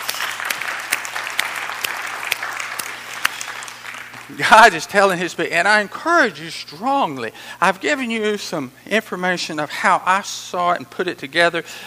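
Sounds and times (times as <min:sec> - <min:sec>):
audience hand clapping: 0:00.0 - 0:04.8
speech: 0:04.3 - 0:11.8.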